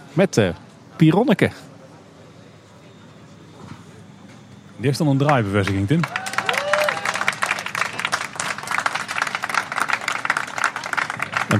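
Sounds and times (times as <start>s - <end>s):
speech: 0.2s - 1.7s, 4.8s - 6.2s
crowd applauding a topping-out ceremony: 5.3s - 11.5s.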